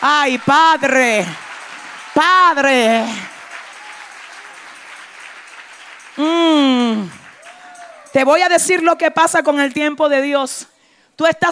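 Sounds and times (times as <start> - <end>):
audience applause: 0.0 - 8.3
speech: 0.2 - 1.4, 2.2 - 3.3, 6.2 - 7.2, 8.1 - 11.5.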